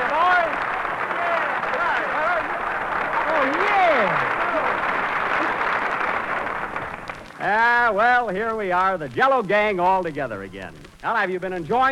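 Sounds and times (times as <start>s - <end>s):
studio audience applause: 0.0s - 8.0s
speech: 7.9s - 11.9s.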